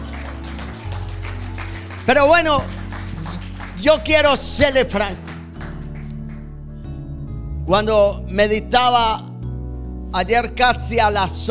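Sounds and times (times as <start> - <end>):
audience applause: 0.0 - 6.4
low sustained musical drone: 0.0 - 10.2
speech: 2.1 - 2.8, 3.8 - 5.2, 7.7 - 9.3, 10.1 - 11.5.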